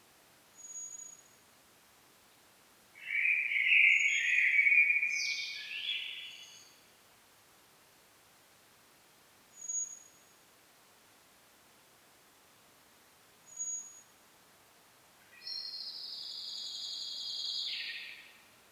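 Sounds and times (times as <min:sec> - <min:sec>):
common blackbird singing: 0:03.0 - 0:06.6, 0:15.4 - 0:18.3.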